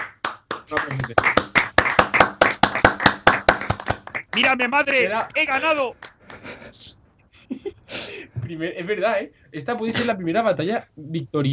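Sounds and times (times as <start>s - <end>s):
applause: 0.0s - 4.3s
speech: 0.7s - 1.5s, 4.4s - 6.0s, 8.5s - 11.5s.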